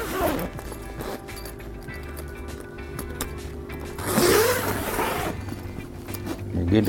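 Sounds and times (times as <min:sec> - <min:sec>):
zipper zipping shut on a Scent Crusher closet bag: 0:00.0 - 0:01.6, 0:03.8 - 0:06.5
steady low hum: 0:00.0 - 0:06.8.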